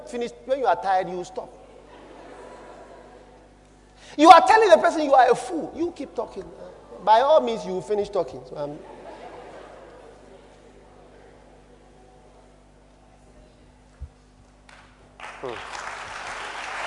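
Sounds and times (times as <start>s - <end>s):
speech: 0.1s - 1.6s, 4.0s - 9.0s
laughter: 1.6s - 3.6s, 8.6s - 11.5s
audience clapping: 14.7s - 16.8s.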